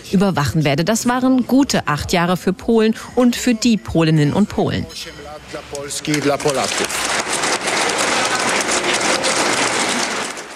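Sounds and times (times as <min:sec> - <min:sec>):
speech: 0:00.1 - 0:07.2
parliamentary faction applause in a parliamentary chamber: 0:05.8 - 0:10.5.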